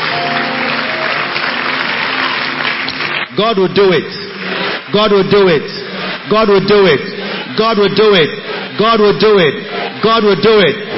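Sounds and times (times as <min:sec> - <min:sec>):
audience clapping: 0:00.0 - 0:06.9
speech: 0:03.4 - 0:04.3, 0:04.9 - 0:10.8.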